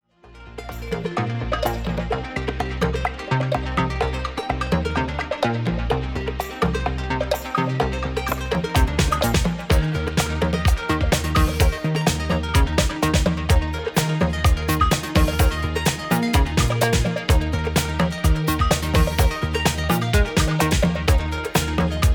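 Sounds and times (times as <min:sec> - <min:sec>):
instrumental music: 0:00.4 - 0:22.1.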